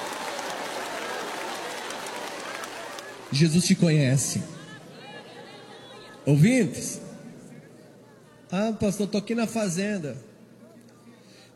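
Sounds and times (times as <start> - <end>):
church congregation applauding in praise: 0.0 - 4.8
speech: 3.3 - 4.6, 6.3 - 7.1, 8.5 - 10.3.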